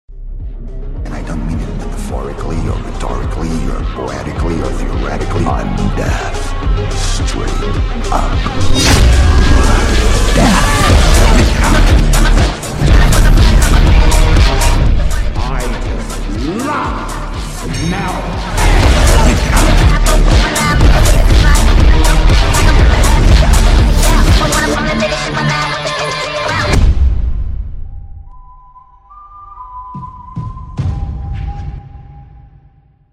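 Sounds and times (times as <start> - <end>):
phonk music: 0.4 - 26.8.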